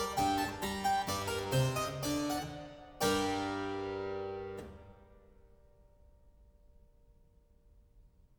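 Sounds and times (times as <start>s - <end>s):
harpsichord: 0.0s - 4.9s.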